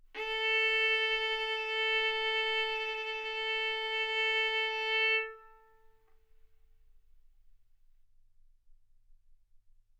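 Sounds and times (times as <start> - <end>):
violin bowed arco notes: 0.0 - 6.0.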